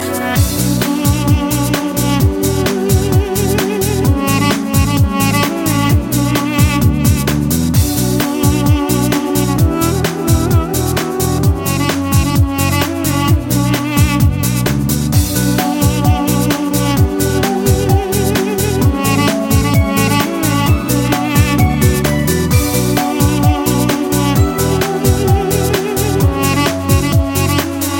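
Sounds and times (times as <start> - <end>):
Armenian duduk playing: 0.3 - 14.5, 15.2 - 27.9.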